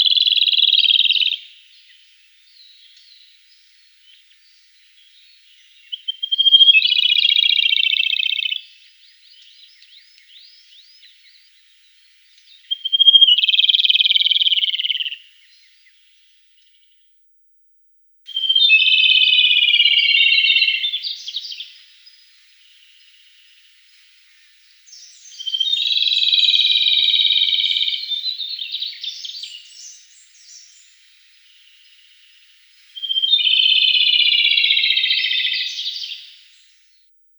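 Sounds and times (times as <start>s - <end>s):
rufous-tailed robin song: 0.0s - 16.1s, 18.3s - 37.0s.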